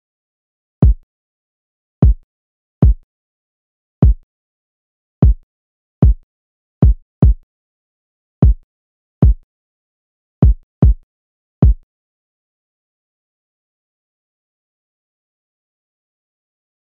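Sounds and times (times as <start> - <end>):
kick drum: 0.8 - 1.0, 2.0 - 2.2, 2.8 - 3.0, 4.0 - 4.2, 5.2 - 5.4, 6.0 - 6.2, 6.8 - 7.4, 8.4 - 8.6, 9.2 - 9.4, 10.4 - 11.0, 11.6 - 11.9.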